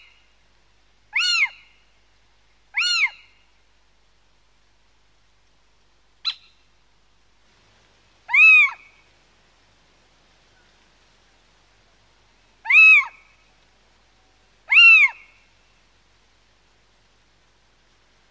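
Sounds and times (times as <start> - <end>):
little owl mewing call rising and falling: 1.1 - 1.8, 2.7 - 3.4, 6.2 - 6.6, 8.3 - 9.0, 12.6 - 13.4, 14.7 - 15.5.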